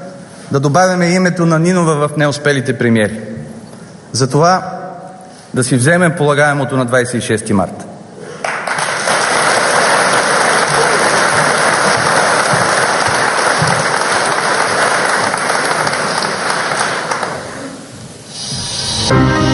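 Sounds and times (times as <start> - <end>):
speech: 0.5 - 3.4, 4.1 - 4.8, 5.5 - 7.9
audience applause: 8.4 - 19.2.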